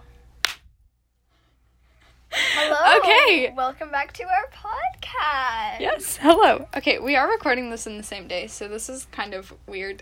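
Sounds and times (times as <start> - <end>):
single hand clap: 0.4 - 0.7
speech: 3.0 - 10.0.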